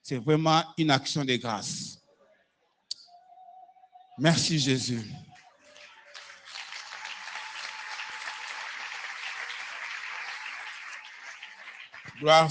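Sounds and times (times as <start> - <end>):
speech: 0.1 - 2.0, 4.2 - 5.3, 12.2 - 12.4
church congregation applauding: 4.3 - 12.4.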